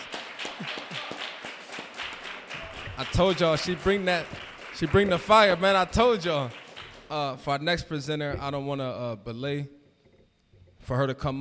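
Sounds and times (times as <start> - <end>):
audience applause: 0.0 - 7.5
speech: 3.0 - 9.8, 10.9 - 11.3.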